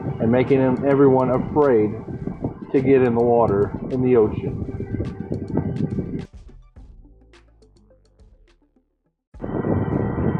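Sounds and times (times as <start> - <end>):
cooling fan buzzing: 0.0 - 6.2, 9.4 - 10.3
speech: 0.2 - 5.2.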